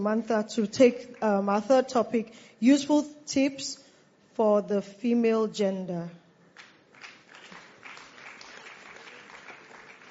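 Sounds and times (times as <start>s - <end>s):
speech: 0.0s - 3.8s, 4.4s - 6.2s
audience clapping: 6.6s - 10.0s.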